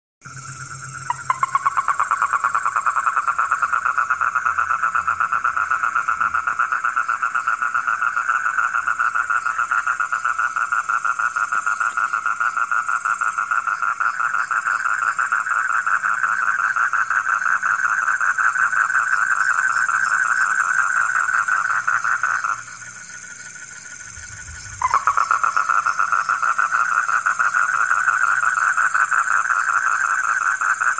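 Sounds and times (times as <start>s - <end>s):
frog croaking in rapid pulses: 0.2s - 30.9s
faint low rumble: 23.9s - 25.6s.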